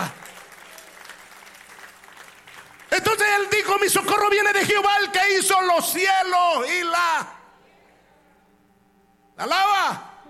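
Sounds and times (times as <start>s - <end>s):
loud audience applause: 0.0s - 3.8s
speech: 3.0s - 7.4s, 9.4s - 10.1s.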